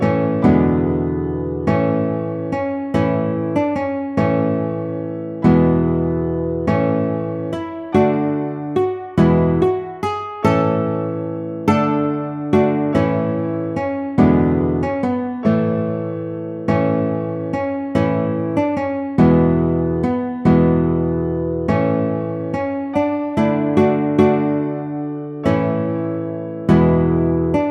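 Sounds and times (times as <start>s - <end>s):
guitar piece: 0.0s - 27.6s.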